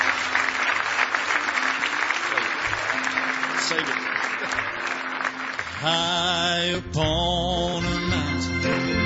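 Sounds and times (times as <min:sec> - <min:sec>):
audience clapping: 0:00.0 - 0:06.8
speech: 0:03.7 - 0:04.1, 0:05.8 - 0:08.9.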